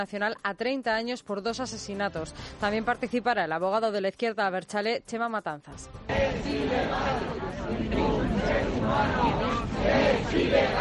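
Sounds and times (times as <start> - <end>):
speech: 0.0 - 10.7
crowd of neighbours shouting and chanting at a protest march in Hortaleza, Madrid: 6.1 - 10.7.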